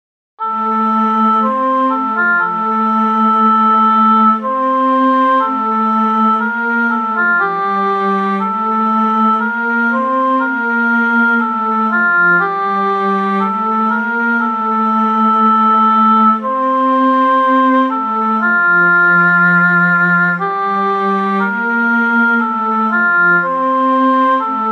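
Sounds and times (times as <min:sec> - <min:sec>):
keyboard: 0:00.4 - 0:24.7.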